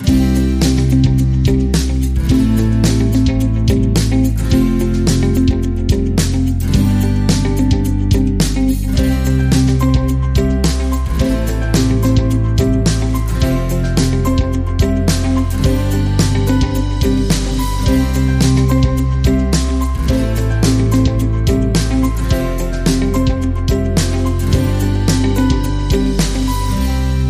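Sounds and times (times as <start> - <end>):
acoustic inspiration underscore music: 0.0 - 27.2.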